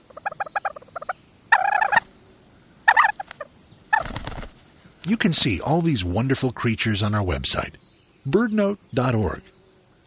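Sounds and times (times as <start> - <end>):
white-tailed ptarmigan clucking and cackling: 0.0 - 2.2, 2.8 - 4.7
speech: 5.1 - 9.5.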